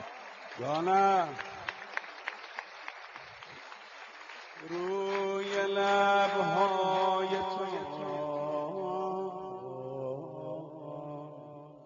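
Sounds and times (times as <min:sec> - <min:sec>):
audience rhythmic clapping at a gathering: 0:00.0 - 0:08.4
speech: 0:00.6 - 0:01.6, 0:04.6 - 0:07.6.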